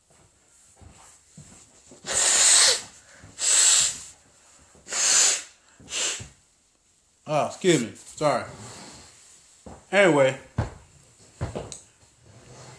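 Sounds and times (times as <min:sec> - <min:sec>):
nose blowing: 0:02.0 - 0:04.2, 0:04.8 - 0:06.4
speech: 0:07.3 - 0:08.7, 0:09.9 - 0:10.5.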